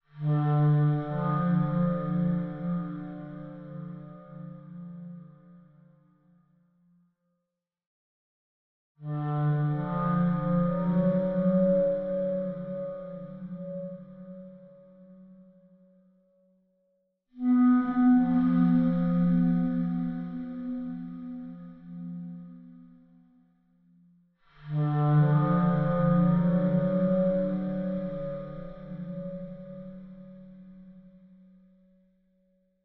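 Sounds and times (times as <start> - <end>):
ethereal clarinet: 0.1 - 6.6, 9.0 - 16.3, 17.4 - 24.0, 24.6 - 32.1.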